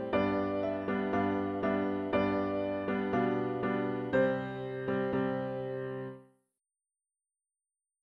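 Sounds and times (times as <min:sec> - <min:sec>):
easy four-hand piano exercise: 0:00.0 - 0:06.2.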